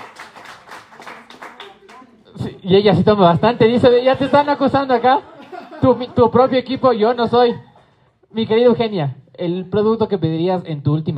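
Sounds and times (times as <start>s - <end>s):
small group clapping: 0.0s - 2.3s
speech: 2.6s - 7.7s, 8.3s - 11.1s
laughter: 3.5s - 7.8s.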